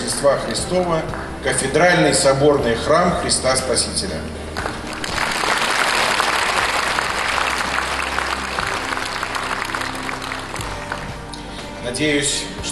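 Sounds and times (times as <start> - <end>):
speech: 0.2 - 4.7, 11.9 - 12.7
large crowd applauding: 4.6 - 11.4.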